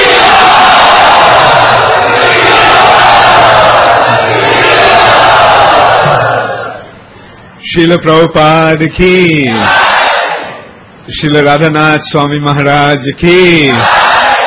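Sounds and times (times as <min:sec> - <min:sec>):
crowd of devotees chanting loudly in welcome: 0:00.0 - 0:06.9, 0:09.5 - 0:10.6, 0:13.7 - 0:14.4
speech: 0:07.8 - 0:09.8, 0:11.1 - 0:14.0.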